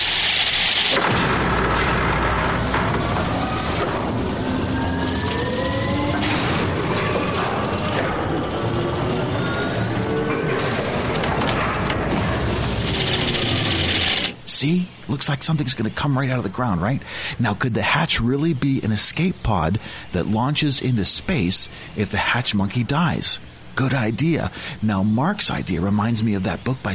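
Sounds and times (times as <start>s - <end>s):
machinery starting up: 0.0s - 14.4s
doors closing: 0.7s - 14.4s
speech: 14.6s - 26.9s.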